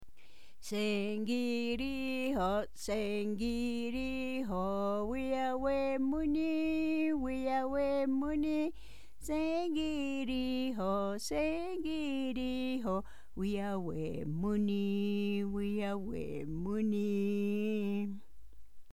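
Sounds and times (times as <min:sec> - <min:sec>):
goodbye song: 0:00.6 - 0:18.2.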